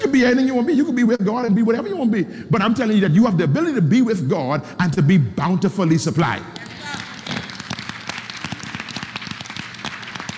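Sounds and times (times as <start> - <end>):
speech: 0.1 - 6.7
audience clapping: 6.5 - 10.3.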